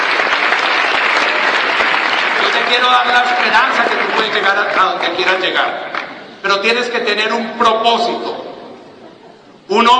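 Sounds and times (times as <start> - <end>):
steady loud crowd applause: 0.0 - 6.2
speech: 2.7 - 8.4, 9.7 - 9.9.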